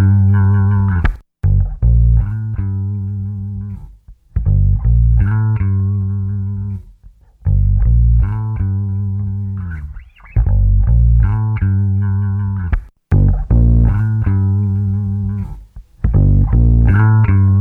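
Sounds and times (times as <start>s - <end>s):
funk bass loop: 0.0s - 17.5s.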